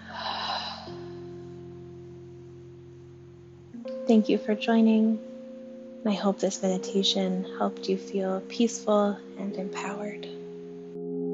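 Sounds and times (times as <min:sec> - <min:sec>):
deep breath in and exhale during a guided meditation: 0:00.0 - 0:01.1
steady low sustained tone: 0:00.0 - 0:11.3
speech: 0:04.1 - 0:05.3, 0:06.0 - 0:10.4.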